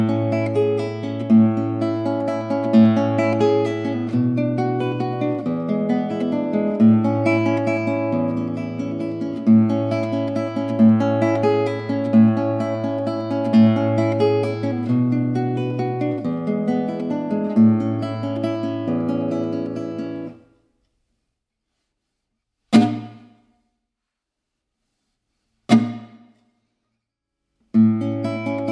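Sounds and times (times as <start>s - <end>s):
instrumental music: 0.0s - 20.4s, 27.8s - 28.6s.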